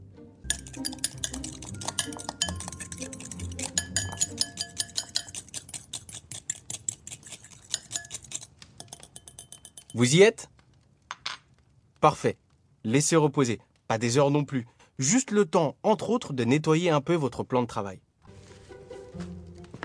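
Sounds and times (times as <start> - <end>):
fork clinking against a bowl while mixing a salted and peppered mixture: 0.5 - 10.0
speech: 10.0 - 10.5, 12.0 - 18.1.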